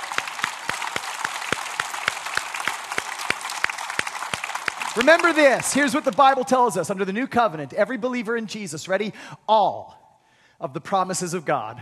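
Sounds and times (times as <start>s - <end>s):
audience clapping: 0.0s - 6.8s
speech: 5.0s - 10.0s, 10.6s - 11.8s.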